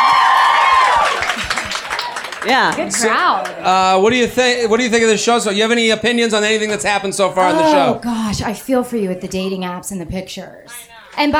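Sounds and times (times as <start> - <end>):
cheering whoop sliding downward in pitch: 0.0 - 2.3
audience applause: 0.0 - 5.6
speech: 2.4 - 11.3.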